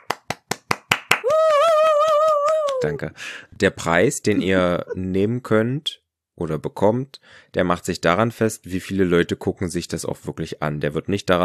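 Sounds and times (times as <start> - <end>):
hand claps: 0.0 - 3.0
speech: 2.8 - 11.4.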